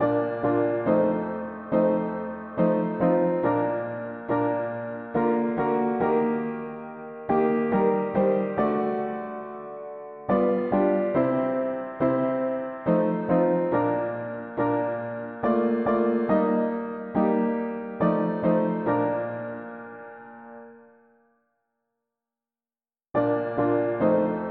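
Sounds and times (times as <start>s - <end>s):
mono piano: 0.0s - 21.5s, 23.1s - 24.5s.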